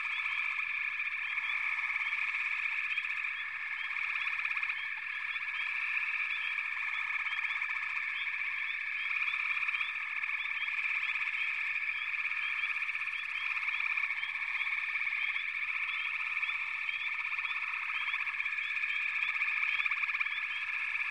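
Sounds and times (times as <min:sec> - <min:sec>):
frogs calling in chorus: 0:00.0 - 0:21.0.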